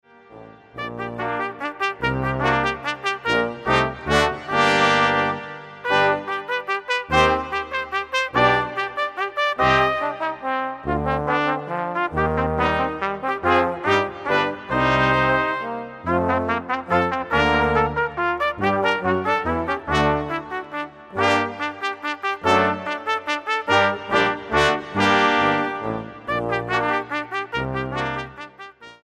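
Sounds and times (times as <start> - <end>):
minuet: 0.1 - 29.0.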